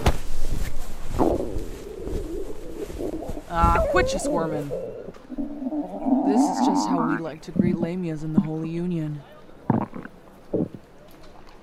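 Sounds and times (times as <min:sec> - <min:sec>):
stomach growling: 0:01.0 - 0:08.6, 0:09.7 - 0:10.8
speech: 0:03.6 - 0:05.2, 0:06.3 - 0:09.3.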